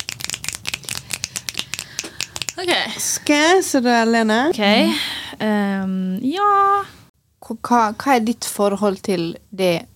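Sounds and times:
small group clapping: 0.0 - 2.6
speech: 2.6 - 9.9.

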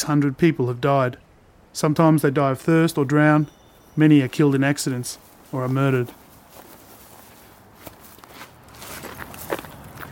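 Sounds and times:
speech: 0.0 - 1.2, 1.8 - 6.2
low noise: 0.0 - 10.0
footsteps crunching: 2.6 - 10.0.

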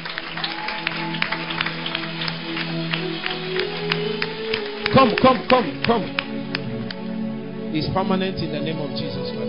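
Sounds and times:
church congregation clapping during a healing service: 0.0 - 7.2
speech: 4.9 - 6.2, 7.7 - 9.3.

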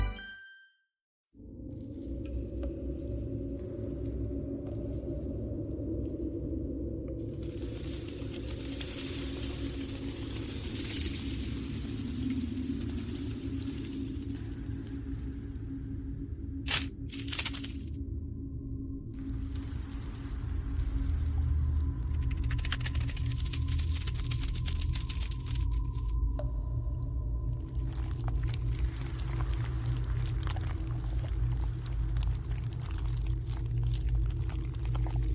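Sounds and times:
alien hive ambience low droning rumble: 1.5 - 35.3.

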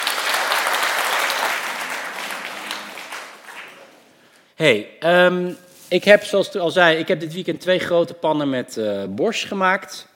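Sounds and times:
audience applause: 0.0 - 4.2
speech: 4.6 - 10.1.

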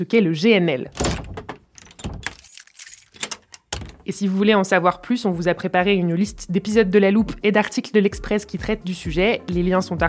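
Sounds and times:
speech: 0.0 - 1.1, 4.1 - 10.0
wardrobe door pushed shut: 0.9 - 2.4
sharp knocks and rattles: 0.9 - 4.1
jangling metal clatter: 1.0 - 4.0.

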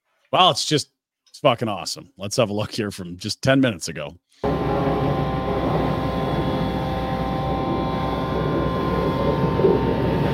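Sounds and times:
speech: 0.3 - 4.5
vacuum trucks at a construction site: 4.4 - 10.3.

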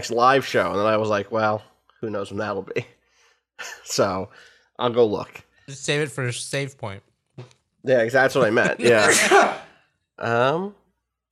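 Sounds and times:
speech: 0.0 - 3.0, 3.6 - 11.3
person sneezing: 8.8 - 9.7.

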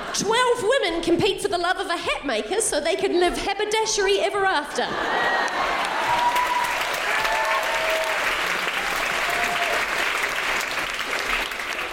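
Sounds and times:
speech: 0.2 - 5.4
applause: 5.4 - 11.9.

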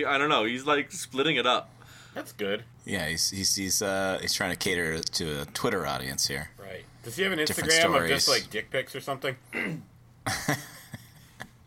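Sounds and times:
speech: 0.0 - 10.7
person yawning and coughing at the same time: 9.5 - 9.9.

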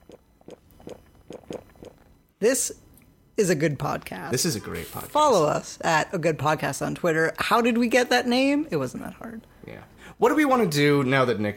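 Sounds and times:
person gulping a drink into the mic: 0.0 - 2.2
speech: 2.4 - 2.8, 3.4 - 9.5, 10.2 - 11.5.

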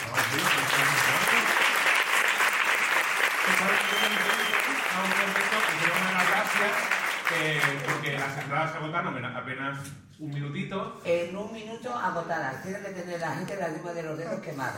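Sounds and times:
audience applause: 0.0 - 8.5
speech: 6.5 - 14.7.

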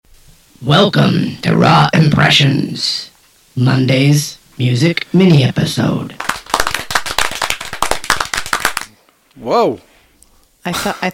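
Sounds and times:
speech: 0.6 - 6.2, 9.4 - 9.9, 10.6 - 11.1
applause sound effect: 6.2 - 8.9.

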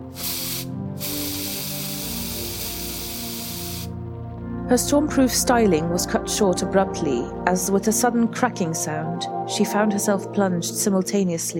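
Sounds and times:
aerosol hairspray can spraying: 0.0 - 3.9
speech: 4.7 - 11.5.

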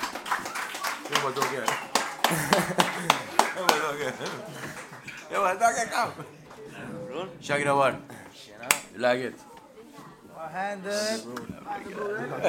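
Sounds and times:
applause: 0.0 - 5.2
laughter: 0.0 - 7.0, 12.0 - 12.4
speech: 1.1 - 9.5, 10.4 - 12.4.

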